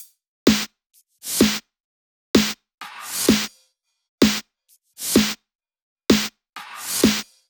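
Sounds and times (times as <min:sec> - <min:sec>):
drum kit at 128 BPM: 0:00.0 - 0:01.6, 0:02.4 - 0:03.5, 0:04.2 - 0:04.4, 0:05.0 - 0:05.4, 0:06.1 - 0:07.3.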